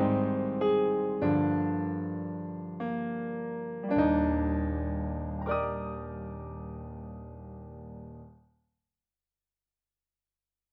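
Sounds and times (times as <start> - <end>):
grand piano: 0.0 - 8.4.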